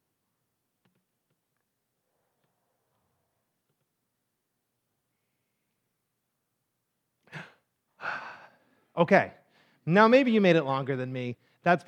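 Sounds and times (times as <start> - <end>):
person taking deep breaths after holding breath: 7.3 - 8.9, 9.5 - 9.8
speech: 9.0 - 11.8.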